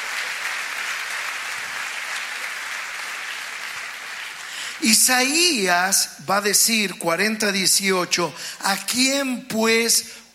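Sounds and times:
audience applause: 0.0s - 5.0s
speech: 4.8s - 10.2s.

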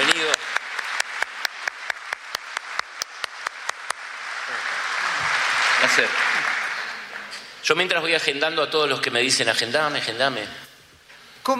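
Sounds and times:
audience applause: 0.0s - 8.2s
speech: 5.9s - 6.3s, 7.6s - 10.6s.

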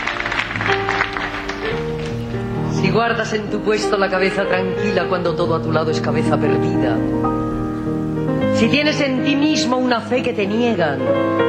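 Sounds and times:
audience applause: 0.0s - 2.4s
sustained low musical tones: 0.0s - 11.4s
speech: 2.9s - 11.4s.

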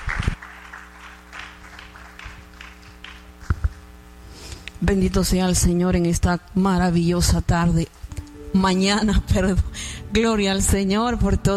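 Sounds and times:
audience applause: 0.0s - 3.4s
speech: 4.8s - 11.5s.

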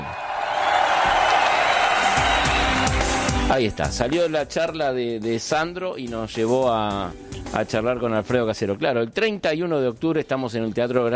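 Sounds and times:
audience applause: 0.0s - 3.5s
speech: 3.5s - 11.1s.

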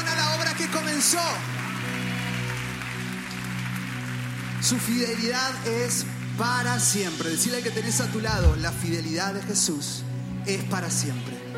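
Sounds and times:
congregation applause at a church service: 0.0s - 9.1s
speech: 1.0s - 1.6s, 4.6s - 11.4s
sustained low keyboard drone: 8.2s - 9.5s.

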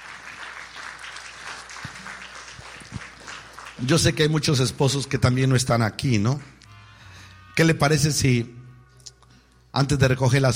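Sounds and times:
audience clapping hands: 0.0s - 6.6s
speech: 3.8s - 6.6s, 7.6s - 8.6s, 9.8s - 10.5s.

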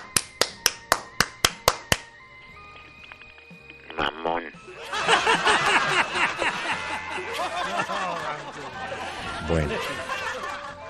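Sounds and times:
sharp hand claps: 0.0s - 2.1s
laughter: 4.7s - 10.8s
speech: 9.5s - 9.9s.

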